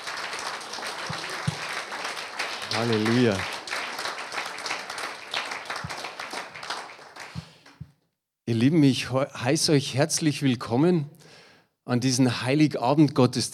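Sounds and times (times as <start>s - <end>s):
cheers: 0.0s - 7.4s
audience applause: 0.0s - 7.8s
speech: 2.8s - 3.5s, 8.5s - 11.2s, 11.9s - 13.5s.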